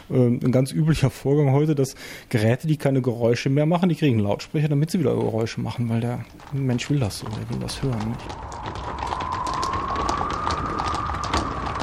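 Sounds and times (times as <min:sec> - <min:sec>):
speech: 0:00.1 - 0:09.0
horse hooves clip-clopping: 0:04.8 - 0:11.8
creaking leather saddle: 0:04.9 - 0:11.8
steady rushing noise: 0:07.6 - 0:11.8.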